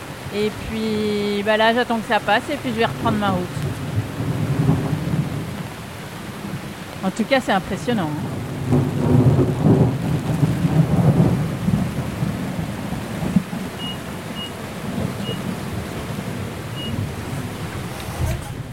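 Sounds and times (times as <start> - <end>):
rain in a squall at sea: 0.0 - 18.7
speech: 0.3 - 3.7, 7.0 - 8.8
thunder at sea: 3.6 - 6.6, 8.2 - 18.7.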